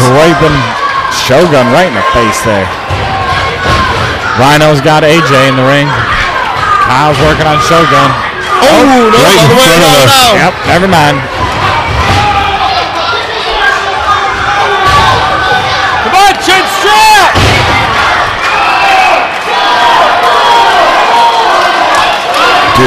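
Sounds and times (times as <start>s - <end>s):
wrestling arena crowd cheering wildly: 0.0s - 22.8s
speech: 0.3s - 3.0s, 4.4s - 6.2s, 6.9s - 11.5s.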